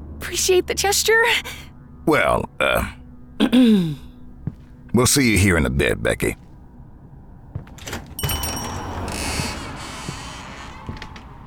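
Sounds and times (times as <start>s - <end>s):
speech: 0.3s - 4.0s, 5.0s - 6.4s
door creaking open: 7.6s - 11.4s.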